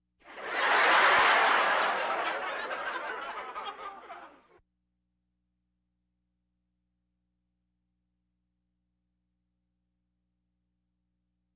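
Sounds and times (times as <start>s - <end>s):
audience laughter: 0.3s - 4.5s.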